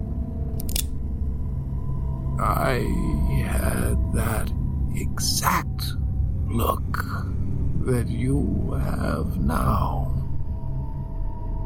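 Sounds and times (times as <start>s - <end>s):
steady low hum: 0.0s - 11.6s
gun hammer being cocked back: 0.6s - 0.9s
speech: 2.4s - 10.1s.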